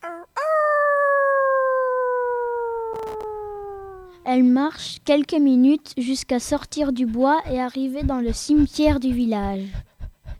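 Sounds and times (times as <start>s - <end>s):
golden-furred she-wolf howling at the moon: 0.0s - 4.3s
speech: 4.3s - 9.8s.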